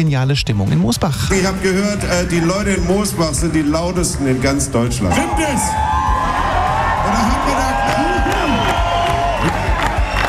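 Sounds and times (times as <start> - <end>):
speech: 0.0 - 6.0
crowd clapping at an open-air concert in Moosbach: 5.2 - 10.2.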